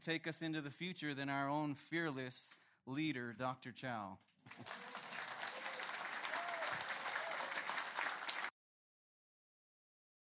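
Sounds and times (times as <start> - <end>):
speech: 0.0 - 4.9
audience applause: 4.5 - 8.5.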